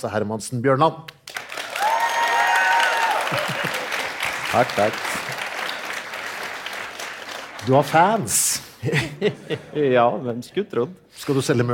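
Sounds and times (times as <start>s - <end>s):
speech: 0.0s - 1.3s, 3.3s - 3.8s, 4.5s - 5.3s, 7.6s - 11.7s
audience applause: 1.3s - 8.5s
laughter: 3.0s - 5.8s, 8.8s - 10.1s.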